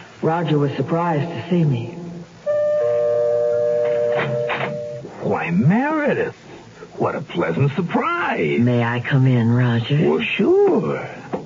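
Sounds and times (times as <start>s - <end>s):
speech: 0.2s - 2.0s, 4.2s - 11.2s
doorbell ringing: 2.5s - 5.1s.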